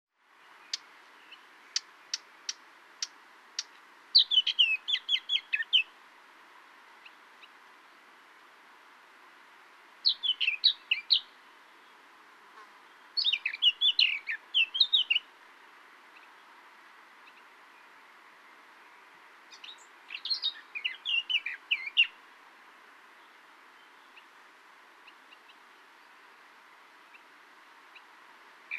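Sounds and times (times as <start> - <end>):
Eurasian blackcap Sylvia atricapilla chirping: 1.7 - 5.9, 10.1 - 11.3, 13.2 - 15.3, 19.5 - 22.1.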